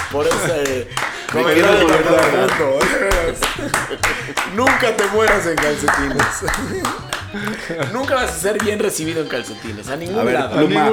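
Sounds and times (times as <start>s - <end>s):
applause: 0.0s - 9.5s
laughter: 0.0s - 10.9s
speech: 0.1s - 10.9s.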